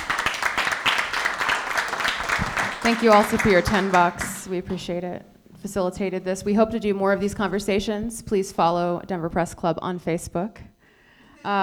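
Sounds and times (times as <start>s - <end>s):
audience applause: 0.0s - 4.6s
speech: 2.8s - 10.7s, 11.4s - 11.6s.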